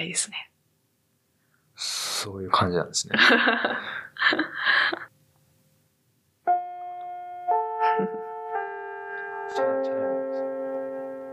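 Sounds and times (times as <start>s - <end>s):
speech: 0.0s - 0.5s, 2.2s - 5.1s
laughter: 3.1s - 5.1s
chime: 6.5s - 11.3s.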